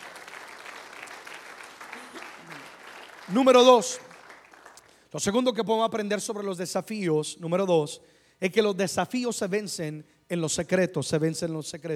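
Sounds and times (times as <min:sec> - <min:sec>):
audience applauding: 0:00.0 - 0:05.0
speech: 0:03.3 - 0:04.1, 0:05.1 - 0:11.9.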